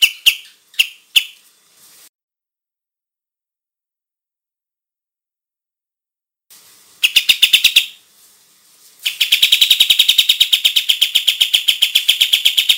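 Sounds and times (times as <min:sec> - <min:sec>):
olive-winged bulbul song of very rapid high chirps: 0:00.0 - 0:01.4, 0:07.0 - 0:08.0, 0:09.0 - 0:12.7.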